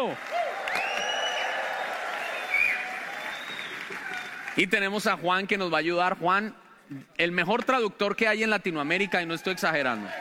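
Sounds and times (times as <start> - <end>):
speech: 0.0 - 0.4, 4.6 - 10.1
audience applause: 0.0 - 5.1.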